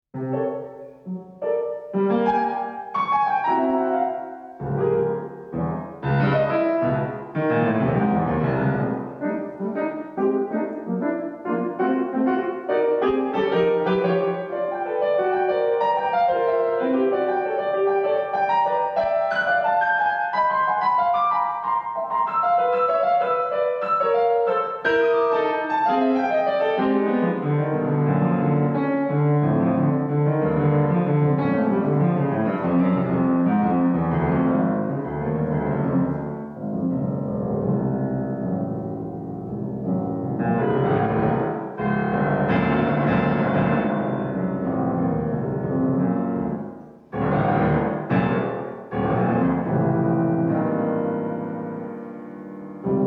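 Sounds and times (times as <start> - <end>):
piano playing: 0.1 - 53.0.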